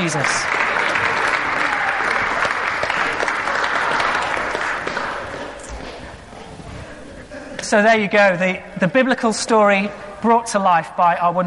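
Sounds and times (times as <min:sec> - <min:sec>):
speech: 0:00.0 - 0:00.6, 0:07.7 - 0:11.4
round of applause: 0:00.0 - 0:05.7.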